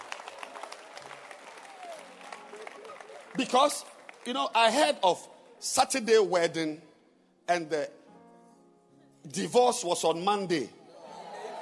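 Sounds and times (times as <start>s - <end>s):
crowd applauding: 0.0s - 5.2s, 11.2s - 11.6s
speech: 3.4s - 6.9s, 7.5s - 8.0s, 9.2s - 10.8s.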